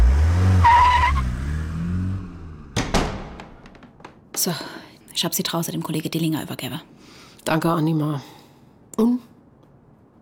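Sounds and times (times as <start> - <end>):
tires squealing braking: 0.0 - 2.4
car pulling up with rumbling engine: 0.0 - 4.3
sharp thuds: 2.7 - 4.4
speech: 4.4 - 8.4, 9.0 - 9.3.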